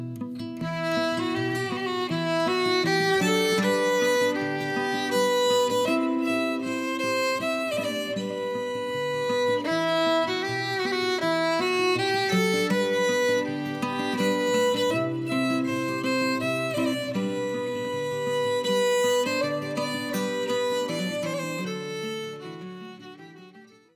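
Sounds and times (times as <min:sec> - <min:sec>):
minuet: 0:00.2 - 0:23.8.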